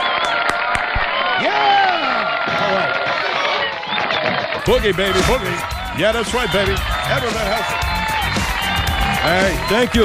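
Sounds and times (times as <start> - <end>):
audience applause and cheering: 0.0 - 10.0
speech: 4.7 - 8.0, 9.2 - 10.0.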